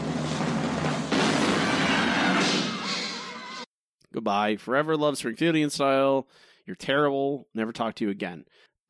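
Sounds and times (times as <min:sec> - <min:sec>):
cannon firing sound effect: 0:00.2 - 0:02.9
speech: 0:04.3 - 0:08.8.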